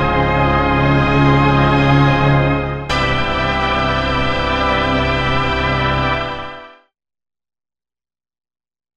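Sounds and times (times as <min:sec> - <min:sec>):
chord hits: 0:00.0 - 0:06.7.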